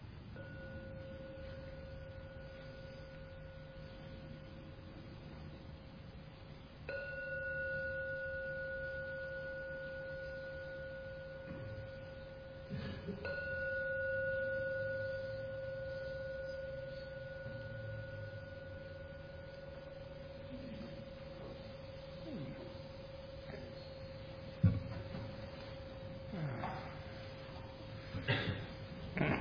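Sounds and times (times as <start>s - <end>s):
meditation gong ringing: 0.4s - 5.0s, 6.9s - 29.2s.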